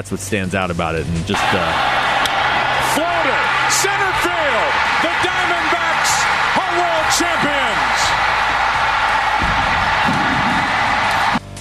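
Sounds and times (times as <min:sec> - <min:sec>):
speech: 0:00.0 - 0:02.3, 0:02.9 - 0:08.3
stadium crowd cheering at baseball game: 0:01.3 - 0:11.5.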